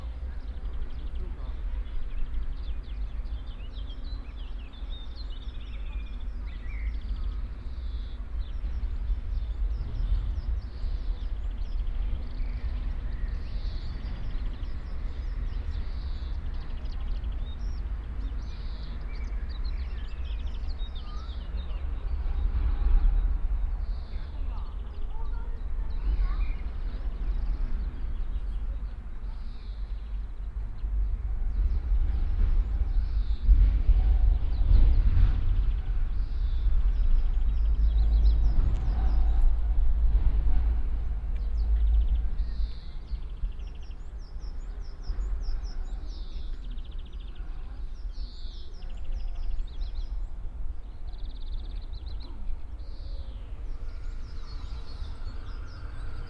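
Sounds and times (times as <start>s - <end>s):
S-Bahn suburban train: 0.0s - 56.2s.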